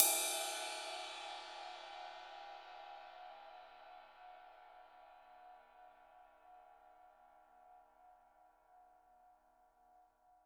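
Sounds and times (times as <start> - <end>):
cymbal: 0.0 - 7.8.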